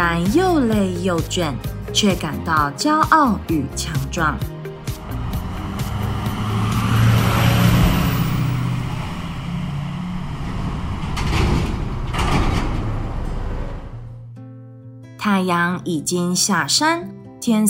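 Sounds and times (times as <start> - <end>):
speech: 0.1 - 4.6, 15.2 - 17.6
construction vehicle engines rumbling: 3.4 - 14.3.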